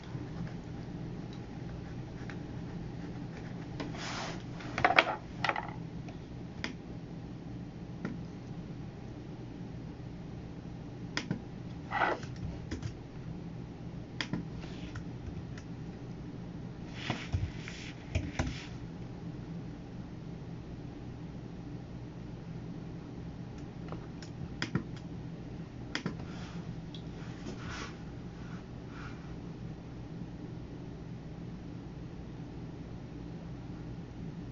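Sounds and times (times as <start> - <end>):
steady low computer hum: 0.0 - 34.5.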